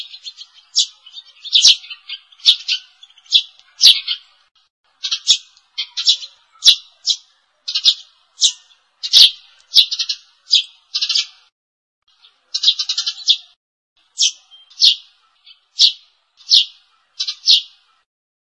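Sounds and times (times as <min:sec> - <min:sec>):
sparrow lure call chirps: 0:00.0 - 0:11.5, 0:12.1 - 0:18.1.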